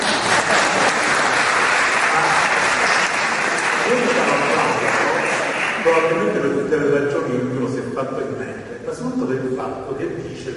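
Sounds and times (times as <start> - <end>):
audience applause: 0.0 - 6.1
speech: 5.8 - 10.5.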